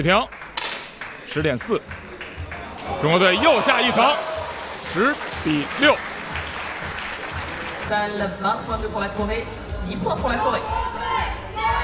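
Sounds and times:
speech: 0.0 - 0.4, 1.3 - 2.0, 2.9 - 4.3, 4.9 - 6.1, 7.9 - 11.0
spectators at the Châteauroux shooting centre cheering and clapping: 0.0 - 8.0.

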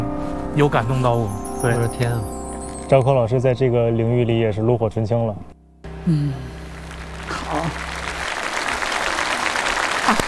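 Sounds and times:
speech: 0.6 - 6.5
audience applause at a singing competition show: 6.6 - 10.2.

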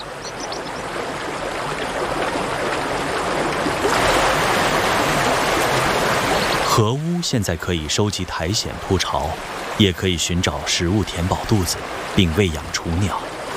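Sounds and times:
mountain stream flowing: 0.0 - 13.5
speech: 6.8 - 13.3.

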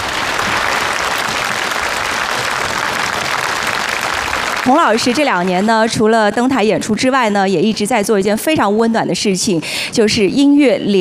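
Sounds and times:
large audience applause: 0.0 - 5.9
speech: 4.7 - 10.9.

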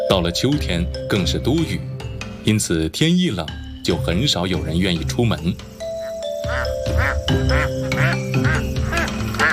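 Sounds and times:
speech: 0.1 - 5.7, 6.4 - 8.5
duck quacking: 6.0 - 9.5.

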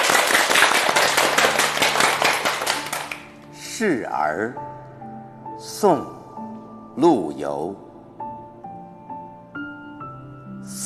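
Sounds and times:
audience applause: 0.0 - 3.3
speech: 3.8 - 4.8, 5.6 - 6.2, 7.0 - 7.8.

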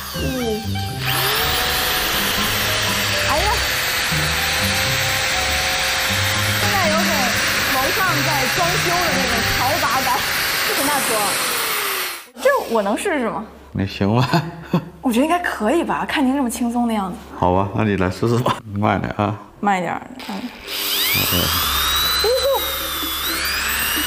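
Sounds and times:
electric drill carving a radish: 0.0 - 12.9, 20.2 - 24.0
speech: 10.0 - 11.5, 12.7 - 21.7.

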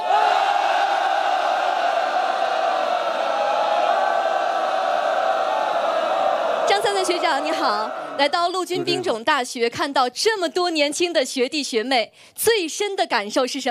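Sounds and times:
audience cheering: 0.0 - 9.0
speech: 7.0 - 13.6.

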